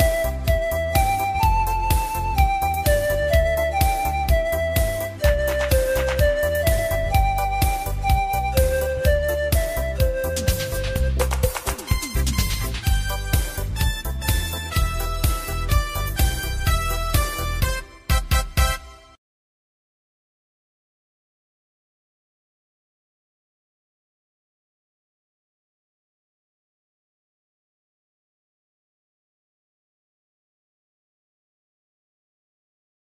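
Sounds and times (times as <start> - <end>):
music beat: 0.0 - 19.2.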